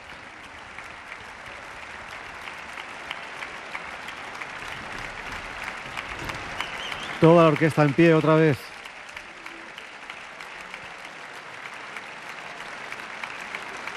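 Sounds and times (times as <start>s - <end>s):
audience applause at the Palacio de Carlos V de Granada: 0.0s - 13.9s
speech: 7.2s - 8.7s.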